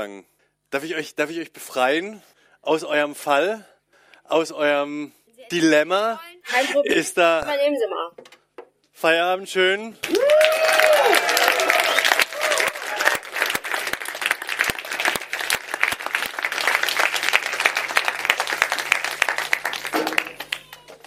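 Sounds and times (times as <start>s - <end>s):
speech: 0.0s - 3.7s, 4.3s - 8.4s, 9.0s - 11.0s
audience clapping: 10.0s - 21.0s
people cheering: 10.0s - 21.0s.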